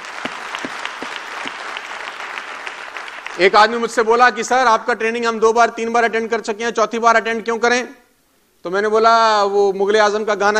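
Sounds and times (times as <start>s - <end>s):
crowd clapping: 0.0s - 4.1s
speech: 3.4s - 8.0s, 8.6s - 10.5s.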